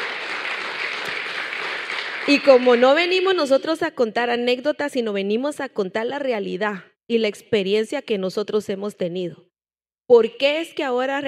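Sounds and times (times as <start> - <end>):
audience applause: 0.0 - 3.0
speech: 2.3 - 9.5, 10.1 - 11.2.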